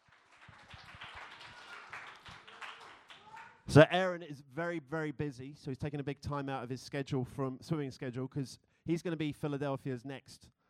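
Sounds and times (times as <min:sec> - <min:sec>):
audience applause: 0:00.0 - 0:03.6
speech: 0:03.7 - 0:10.6.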